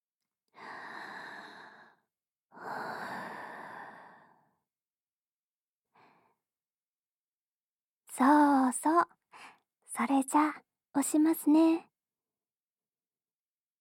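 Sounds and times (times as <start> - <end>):
person breathing slowly: 0.6 - 2.0, 2.6 - 4.6
speech: 8.2 - 9.1, 10.0 - 11.9.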